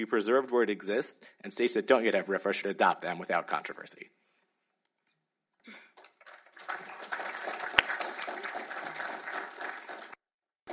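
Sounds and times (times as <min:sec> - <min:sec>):
speech: 0:00.0 - 0:04.2
audience applause: 0:06.0 - 0:10.7.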